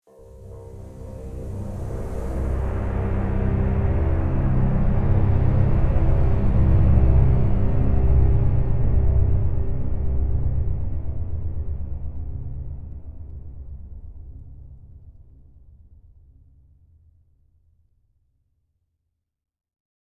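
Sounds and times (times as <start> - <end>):
tense music stinger: 0.2 - 15.4.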